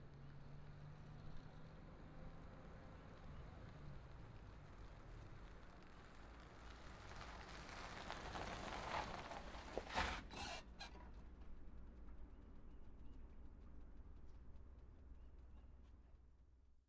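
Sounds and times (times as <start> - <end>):
SUV backing out and returning: 0.1 - 15.8.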